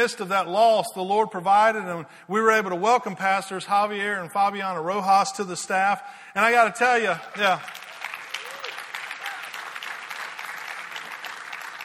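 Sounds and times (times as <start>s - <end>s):
speech: 0.0s - 7.8s
audience applause: 7.2s - 11.8s
short vocal whoops: 7.7s - 9.7s.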